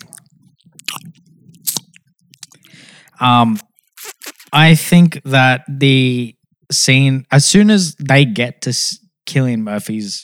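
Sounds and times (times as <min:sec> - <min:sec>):
licking a spoon and eating Nutella: 0:00.0 - 0:02.8
speech: 0:03.2 - 0:03.7, 0:04.5 - 0:10.2.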